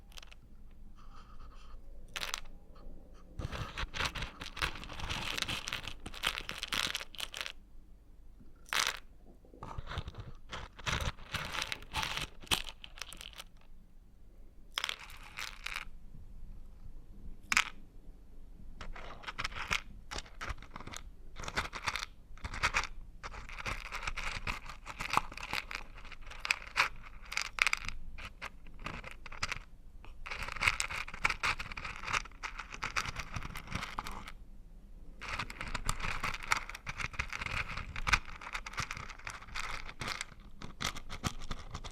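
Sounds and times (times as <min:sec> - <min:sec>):
crunchy stirring with scraping and crackling: 0:03.4 - 0:07.6, 0:09.6 - 0:13.6, 0:14.8 - 0:15.9, 0:18.8 - 0:34.4, 0:35.2 - 0:41.9.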